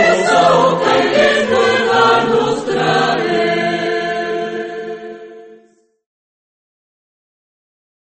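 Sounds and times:
Christmas carol: 0:00.0 - 0:06.0.

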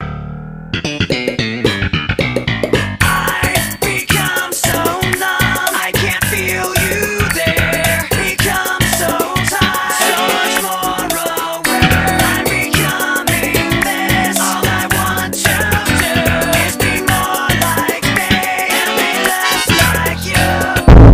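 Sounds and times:
music: 0:00.0 - 0:21.1.

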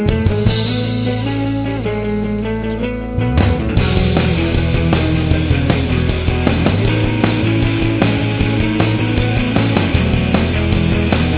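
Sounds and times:
music loop: 0:00.1 - 0:11.3.

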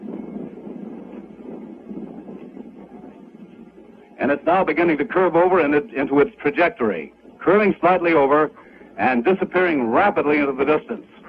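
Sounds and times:
Mercury-Atlas MA-6 rocket launch roar: 0:00.0 - 0:06.0
speech: 0:04.2 - 0:11.2.

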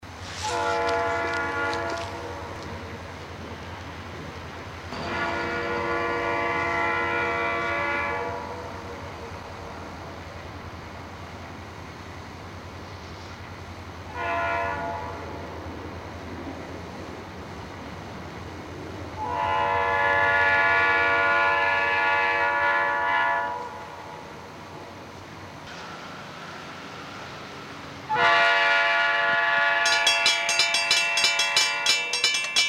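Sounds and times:
empty coal train with Conrail SD40-2 and NS C44-9W locomotives: 0:00.0 - 0:32.6.

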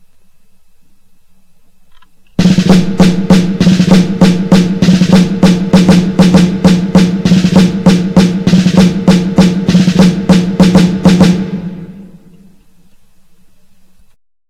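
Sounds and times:
snare drum: 0:02.4 - 0:12.6.

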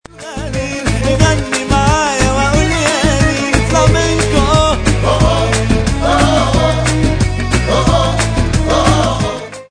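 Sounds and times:
flamenco music: 0:00.0 - 0:09.6.

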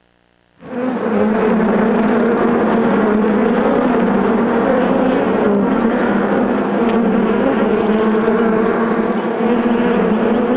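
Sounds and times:
swarm of bees buzzing: 0:00.6 - 0:10.5.

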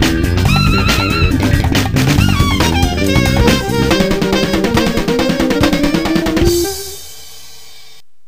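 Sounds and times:
jazz jam: 0:00.0 - 0:07.4.

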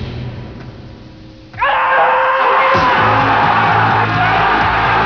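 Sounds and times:
person screaming: 0:01.6 - 0:04.9.

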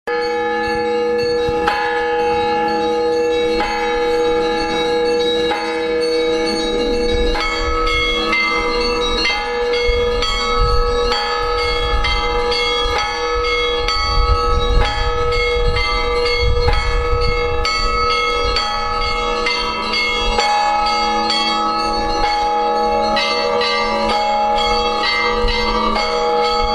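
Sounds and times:
bells ringing: 0:00.1 - 0:26.7.

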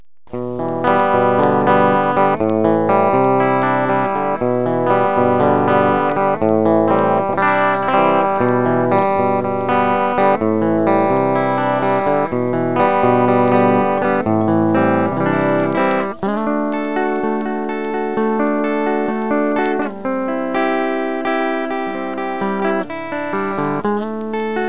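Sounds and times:
acoustic guitar playing: 0:00.3 - 0:24.6.

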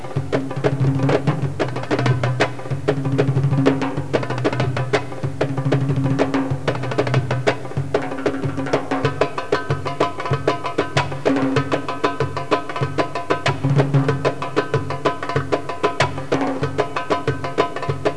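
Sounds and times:
drums: 0:00.0 - 0:18.1.

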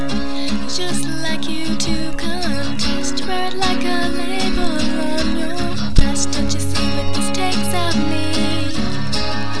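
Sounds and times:
person singing: 0:00.2 - 0:09.5.

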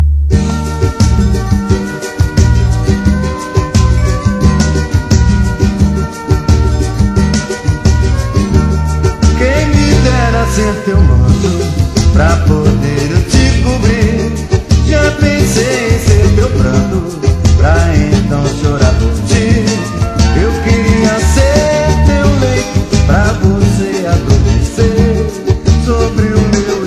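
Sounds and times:
music: 0:00.0 - 0:26.8.

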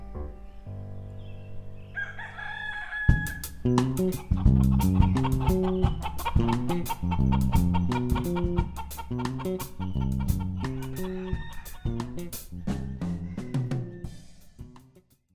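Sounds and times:
chicken clucking: 0:02.0 - 0:03.4, 0:04.1 - 0:14.1.

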